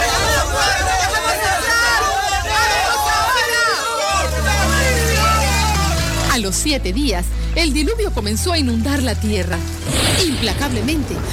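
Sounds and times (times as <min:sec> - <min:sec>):
crowd of people shouting from outside: 0:00.0 - 0:06.4
speech: 0:06.6 - 0:11.3.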